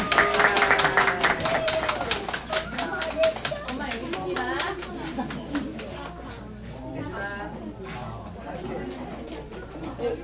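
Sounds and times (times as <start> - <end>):
congregation clapping at an Easter Resurrection Day service: 0.0 - 6.2.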